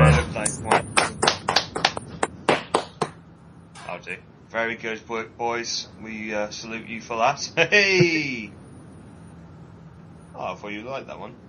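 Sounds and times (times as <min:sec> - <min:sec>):
short round of clapping: 0:00.5 - 0:03.2
speech: 0:04.1 - 0:08.6, 0:10.4 - 0:11.4.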